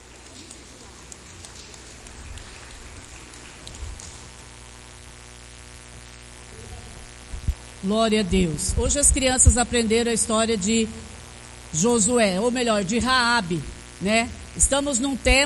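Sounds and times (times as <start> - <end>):
applause: 0.0 - 4.4
speech: 7.8 - 11.0, 11.7 - 15.4.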